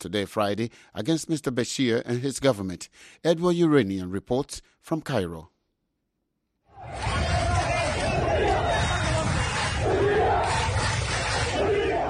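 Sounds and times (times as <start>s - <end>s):
speech: 0.0s - 5.5s
demonstrators chanting slogans in the streets of Port Sudan: 6.8s - 12.0s.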